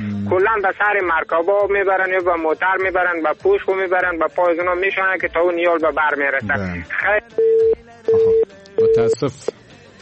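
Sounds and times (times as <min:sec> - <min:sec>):
speech: 0:00.3 - 0:09.6
telephone line tone after a dropped call: 0:07.4 - 0:09.2.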